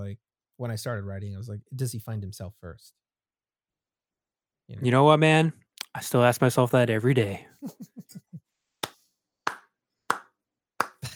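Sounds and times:
speech: 0.0s - 3.0s, 4.7s - 8.0s
laughter: 7.5s - 8.4s, 11.0s - 11.1s
slow clap: 8.8s - 11.1s.

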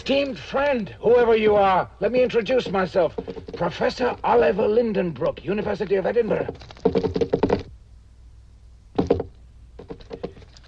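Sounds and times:
speech: 0.0s - 7.4s
hollow knocking taps: 2.5s - 3.8s, 6.4s - 7.7s, 9.0s - 10.5s.

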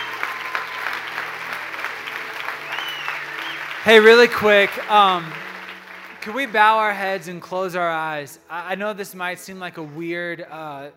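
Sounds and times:
round of applause: 0.0s - 7.3s
speech: 3.8s - 5.4s, 6.2s - 10.9s.

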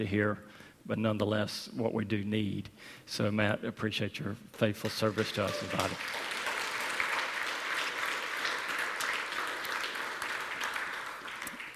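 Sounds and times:
speech: 0.0s - 6.3s
audience applause: 5.1s - 11.7s.

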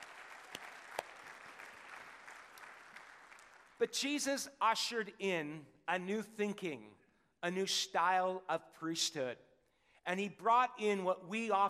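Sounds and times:
audience clapping: 0.0s - 3.8s
speech: 3.8s - 11.6s.

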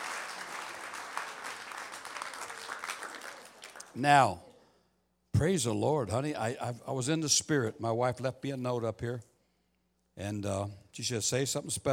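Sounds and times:
audience applause: 0.0s - 4.0s
speech: 4.0s - 4.5s, 5.4s - 9.3s, 10.2s - 11.9s.

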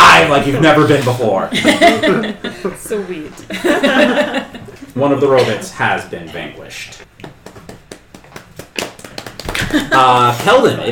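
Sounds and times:
speech: 0.3s - 7.4s, 9.7s - 10.8s
laughter: 1.5s - 4.8s, 9.4s - 10.8s
hands clapping: 7.0s - 10.8s.

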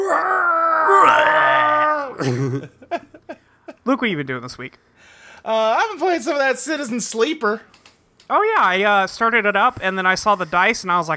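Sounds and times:
voice imitating a long drawn-out dying groan: 0.0s - 2.6s
speech: 2.2s - 3.0s, 3.9s - 11.1s.

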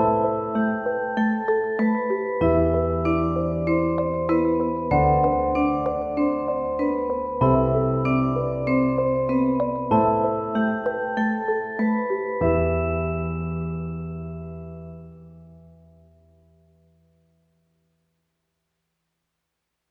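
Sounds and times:
bleak marimba duo: 0.0s - 14.5s.

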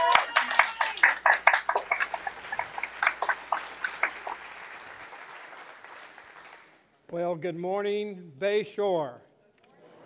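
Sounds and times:
church congregation clapping to welcome a preacher: 0.0s - 6.8s
speech: 7.4s - 9.3s.

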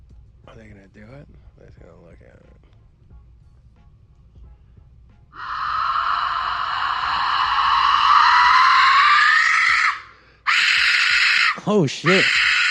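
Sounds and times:
speech: 0.6s - 2.8s, 5.3s - 5.7s, 11.7s - 12.4s
raven death whistle being blown: 5.4s - 12.7s.

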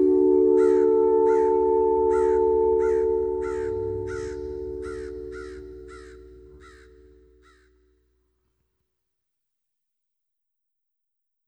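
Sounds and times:
steady sustained tone: 0.0s - 7.6s
crow cawing: 0.0s - 7.8s.

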